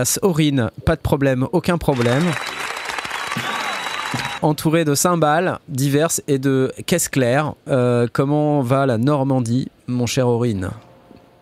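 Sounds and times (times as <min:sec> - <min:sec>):
speech: 0:00.0 - 0:02.6, 0:04.4 - 0:10.8
applause: 0:01.9 - 0:04.4.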